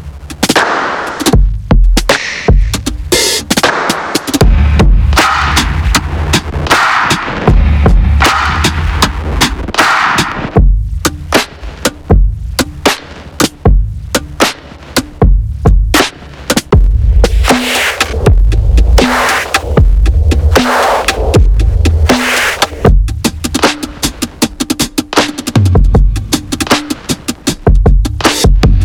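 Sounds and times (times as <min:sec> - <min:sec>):
raw acoustic downtempo drum kit: 0:00.0 - 0:28.8.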